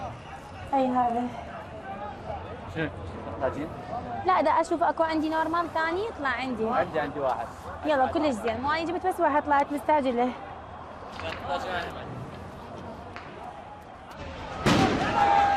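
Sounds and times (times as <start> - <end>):
speech: 0.7 - 1.5, 2.8 - 10.5, 11.2 - 12.1
live ammunition gunfire at Al-Wathba square during a protest: 14.6 - 15.4.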